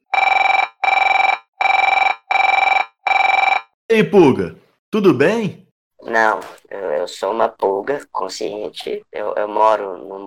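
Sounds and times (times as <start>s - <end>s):
ringback tone while placing a telephone call: 0.1s - 3.8s
speech: 3.9s - 10.2s.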